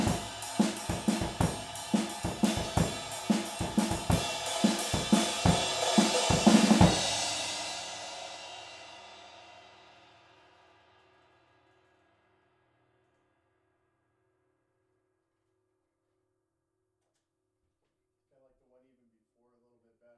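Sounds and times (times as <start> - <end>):
drums recorded in stereo with Rode overhead microphones: 0.0 - 10.9.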